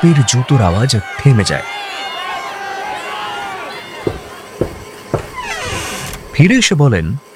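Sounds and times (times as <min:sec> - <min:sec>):
speech: 0:00.0 - 0:01.9, 0:06.4 - 0:07.3
loud crowd shouting slogans outside during a protest: 0:00.0 - 0:04.7.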